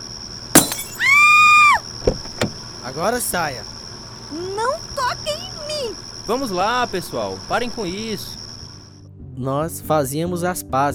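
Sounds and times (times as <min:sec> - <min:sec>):
glass cracking and clinking: 0:00.6 - 0:01.3
car window glass being smashed: 0:00.6 - 0:02.7
speech: 0:02.9 - 0:08.4, 0:09.4 - 0:10.9.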